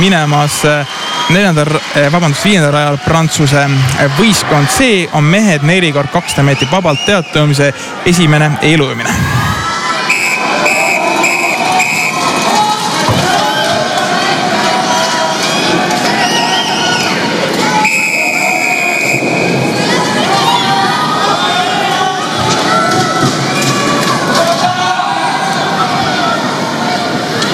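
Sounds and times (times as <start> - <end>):
speech: 0.0 - 9.5
spectators cheering at a swimming pool: 0.1 - 27.4
shrill shouts and whistle-like tones: 9.0 - 11.8.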